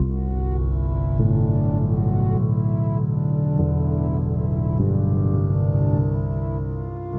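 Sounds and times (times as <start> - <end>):
background music: 0.0 - 7.1.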